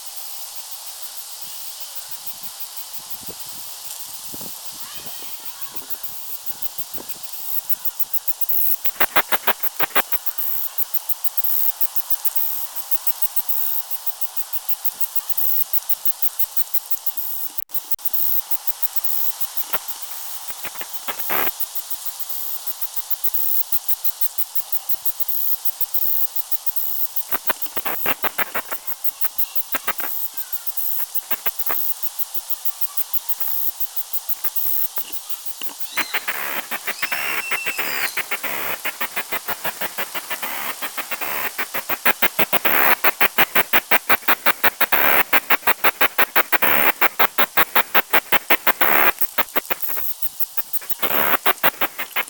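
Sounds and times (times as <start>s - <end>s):
cicada song of ticking pulses: 0.0s - 52.2s
constant hissing background: 0.0s - 52.2s
thin whistled bird notes: 35.0s - 39.8s.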